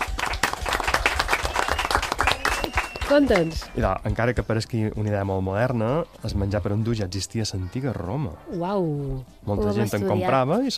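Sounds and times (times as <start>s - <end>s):
audience clapping for a correct quiz answer: 0.0s - 3.9s
speech: 3.1s - 10.7s.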